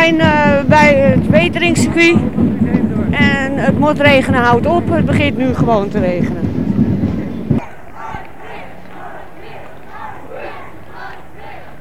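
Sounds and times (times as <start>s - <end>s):
speech: 0.1s - 6.6s
marching crowd shouting together: 6.8s - 11.7s
bursts of yelling: 7.6s - 11.7s.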